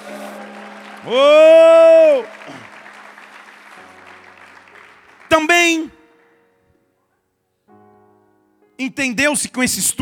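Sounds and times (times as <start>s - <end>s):
audience clapping and cheering: 0.0s - 6.4s
speech: 1.0s - 2.6s, 5.4s - 6.0s, 8.8s - 10.0s.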